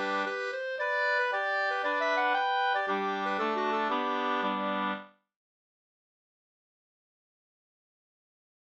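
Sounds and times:
two-part polska folk dance tune: 0:00.0 - 0:05.1.

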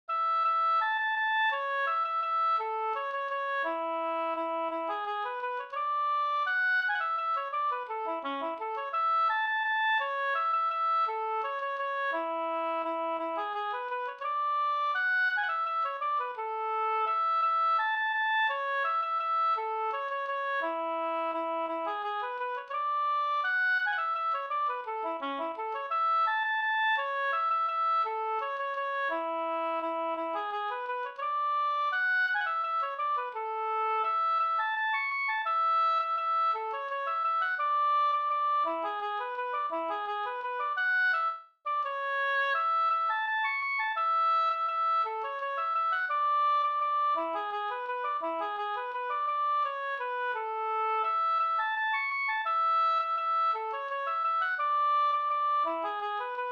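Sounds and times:
waltz in A major: 0:00.2 - 0:56.5.

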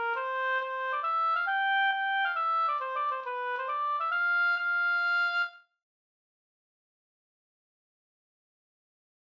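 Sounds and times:
mazurka: 0:00.0 - 0:05.6.

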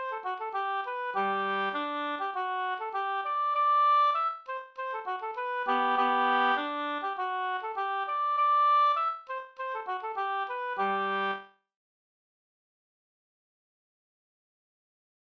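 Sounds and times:
polka music: 0:00.0 - 0:11.5.

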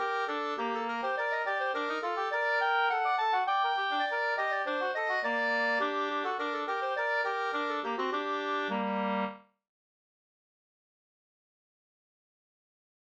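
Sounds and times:
slangpolska folk tune in G minor: 0:00.0 - 0:09.5.

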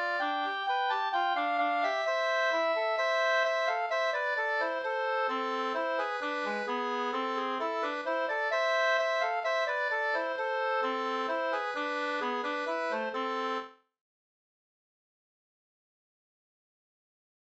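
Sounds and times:
two-part hambopolska folk tune in A minor: 0:00.0 - 0:13.6.

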